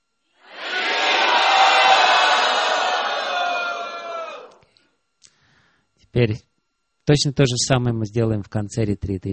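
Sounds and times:
large crowd chanting together: 0:00.4 - 0:04.6
speech: 0:06.1 - 0:06.5, 0:07.1 - 0:09.3.

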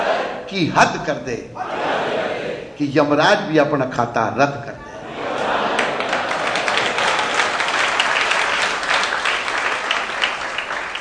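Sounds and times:
speech: 0:00.5 - 0:01.8, 0:02.8 - 0:04.9
laughter: 0:01.6 - 0:02.7, 0:04.8 - 0:10.4
audience clapping: 0:05.3 - 0:10.9.

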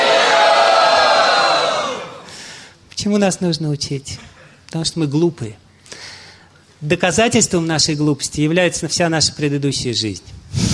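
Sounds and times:
crowd loudly shouting a chant: 0:00.0 - 0:02.2
speech: 0:03.0 - 0:06.2, 0:06.8 - 0:10.7.

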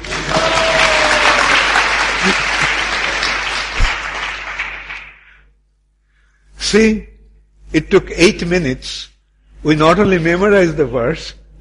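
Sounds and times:
audience applauding: 0:00.0 - 0:05.4
speech: 0:06.7 - 0:07.1, 0:07.7 - 0:11.5.

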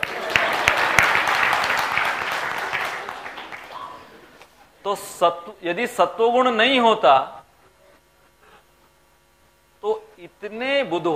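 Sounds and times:
audience applause: 0:00.0 - 0:04.4
speech: 0:04.9 - 0:07.4, 0:10.2 - 0:11.1.

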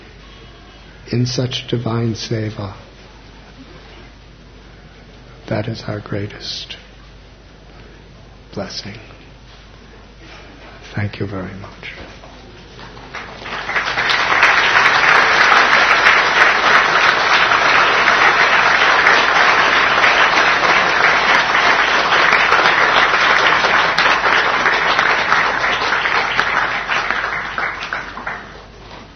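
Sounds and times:
speech: 0:01.1 - 0:02.8, 0:05.5 - 0:06.8, 0:08.5 - 0:09.2, 0:11.0 - 0:12.0
audience clapping: 0:11.5 - 0:29.1.

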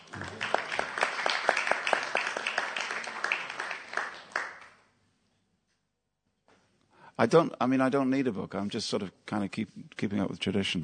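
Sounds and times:
audience round of applause: 0:00.0 - 0:04.8
speech: 0:07.2 - 0:10.8.

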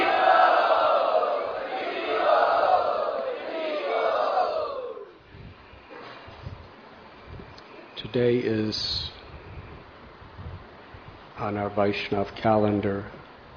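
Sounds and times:
crowd loudly chanting in unison at a religious gathering: 0:00.0 - 0:05.2
crowd murmur: 0:00.0 - 0:06.2
speech: 0:08.1 - 0:09.2, 0:11.4 - 0:13.2.

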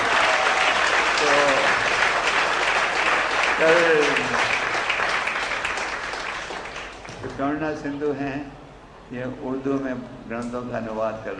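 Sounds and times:
strong applause welcoming two devotees at a religious gathering: 0:00.0 - 0:07.3
speech: 0:03.6 - 0:04.5, 0:07.4 - 0:11.3.

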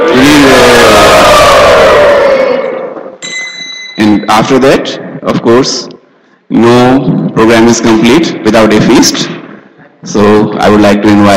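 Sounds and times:
crowd at a devotional temple gathering shouting in unison: 0:00.0 - 0:03.0
speech: 0:04.0 - 0:05.9, 0:06.5 - 0:09.4, 0:10.1 - 0:11.3.

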